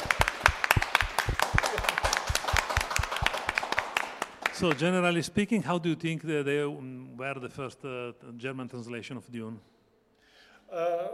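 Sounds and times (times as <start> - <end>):
audience applause: 0.0 - 4.8
speech: 4.6 - 9.7, 10.7 - 11.1.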